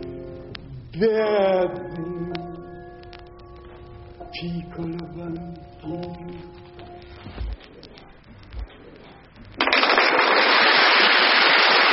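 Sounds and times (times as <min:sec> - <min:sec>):
crackly vinyl record hissing: 0:00.0 - 0:11.9
speech: 0:01.0 - 0:02.4, 0:04.3 - 0:06.6
applause from a vinyl record: 0:09.6 - 0:11.9.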